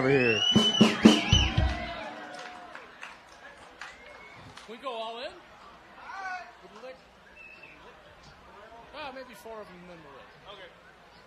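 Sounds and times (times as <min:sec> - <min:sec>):
speech: 0:00.0 - 0:00.6, 0:09.4 - 0:10.3
thin whistle-like tone: 0:00.0 - 0:01.7
crowd cheering and murmuring at an outdoor concert: 0:00.0 - 0:11.2.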